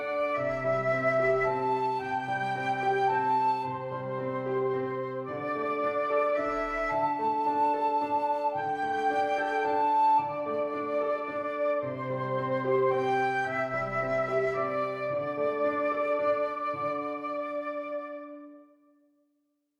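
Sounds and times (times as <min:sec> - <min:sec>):
flute: 0:00.0 - 0:18.8
piano: 0:00.0 - 0:18.8.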